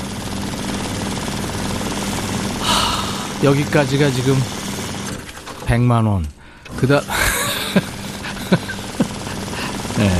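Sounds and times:
bank banknote counting machine running: 0.0s - 2.6s, 3.4s - 5.3s, 6.7s - 10.1s
speech: 3.4s - 4.6s, 5.7s - 7.9s, 8.5s - 8.7s, 10.0s - 10.1s
laughter: 7.0s - 10.1s.

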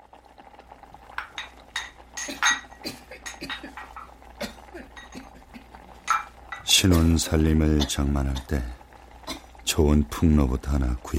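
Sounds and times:
dishes clinking as food is prepared: 1.1s - 8.6s
speech: 6.7s - 8.8s, 9.8s - 11.1s.

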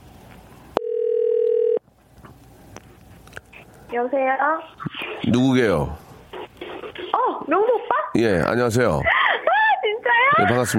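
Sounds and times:
telephone tone: 0.8s - 1.8s
speech: 3.9s - 6.0s, 7.5s - 9.1s, 10.3s - 10.7s
laughter: 9.0s - 10.7s.

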